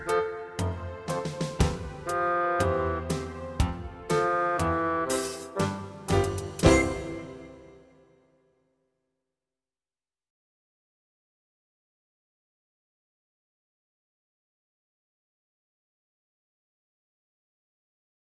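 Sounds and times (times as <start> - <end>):
instrumental music: 0.0 - 8.2.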